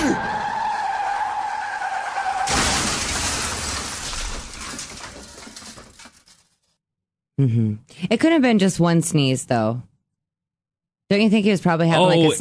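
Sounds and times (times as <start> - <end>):
tires squealing: 0.0 - 2.6
rattling crashing debris: 2.2 - 6.8
car crash impact: 2.3 - 6.6
speech: 7.4 - 9.9, 11.1 - 12.4.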